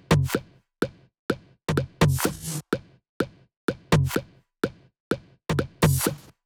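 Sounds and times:
drum kit beat at 126 BPM: 0.1 - 0.4, 1.7 - 2.6, 4.0 - 4.2, 5.5 - 6.3.

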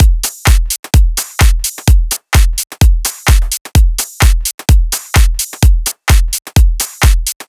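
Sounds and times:
drums: 0.0 - 7.4.

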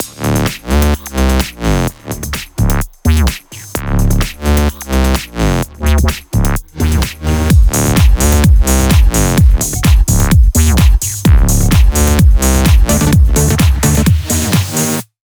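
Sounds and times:
128 BPM music mix: 0.0 - 15.1.

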